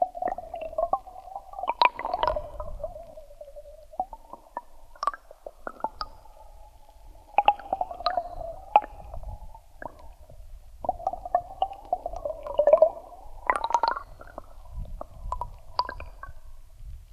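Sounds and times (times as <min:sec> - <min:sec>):
water flowing in a channel in Oristano recorded underwater: 0:00.0 - 0:17.1.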